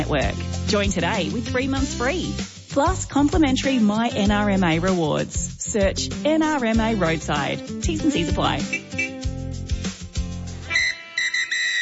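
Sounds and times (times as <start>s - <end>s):
speech: 0.0s - 8.8s
high steady whistle-like tones: 8.7s - 9.2s, 10.7s - 11.8s
final siren at end of game: 10.7s - 11.8s.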